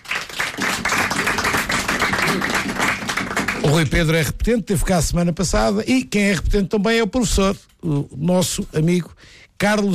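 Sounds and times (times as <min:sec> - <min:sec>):
crowd applause: 0:00.0 - 0:04.0
speech: 0:03.7 - 0:09.9.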